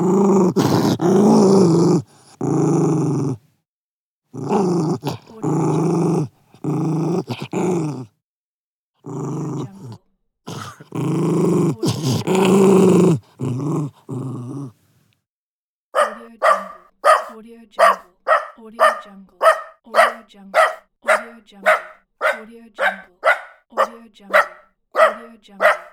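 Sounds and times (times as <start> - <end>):
dog growling: 0.0 - 3.4, 4.3 - 8.1, 9.0 - 14.9, 16.0 - 25.9
small dog howling: 16.0 - 25.9.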